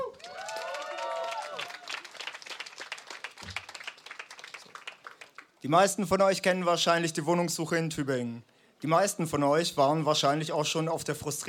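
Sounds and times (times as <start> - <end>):
audience applause: 0.0 - 5.6
speech: 5.6 - 11.4.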